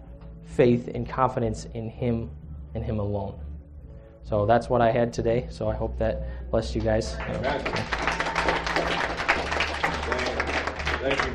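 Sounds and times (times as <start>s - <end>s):
speech: 0.6s - 3.5s, 4.2s - 8.0s
church congregation applauding during a morning service: 7.1s - 11.3s.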